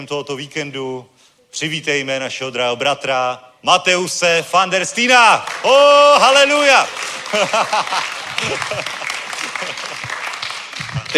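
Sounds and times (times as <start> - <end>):
speech: 0.0 - 9.0
audience applause: 5.4 - 11.1
laughter: 6.8 - 11.1.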